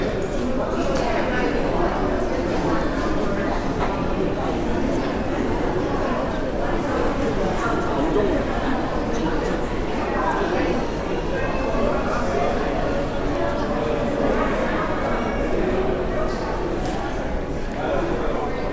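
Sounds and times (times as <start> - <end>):
Narita airport arrival hall ambience in Tokyo: 0.0 - 18.7.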